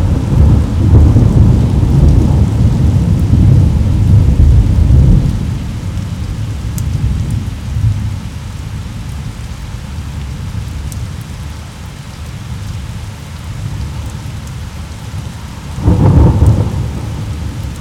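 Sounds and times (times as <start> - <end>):
thunder rumble: 0.0 - 5.7, 15.7 - 17.7
rain: 0.0 - 17.7.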